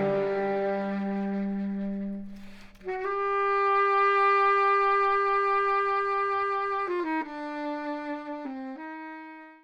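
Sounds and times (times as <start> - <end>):
saxophone in a medium room with plate reverb: 0.0 - 9.6.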